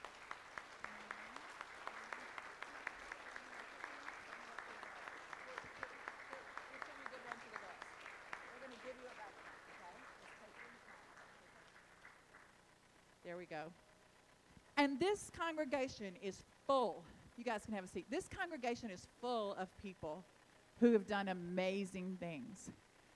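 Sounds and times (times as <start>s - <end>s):
audience applause: 0.0s - 12.6s
speech: 13.3s - 13.8s, 14.8s - 22.8s.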